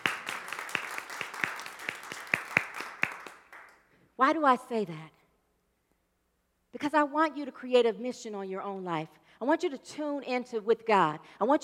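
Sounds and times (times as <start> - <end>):
audience clapping: 0.0 - 3.8
speech: 4.2 - 5.2, 6.8 - 11.6.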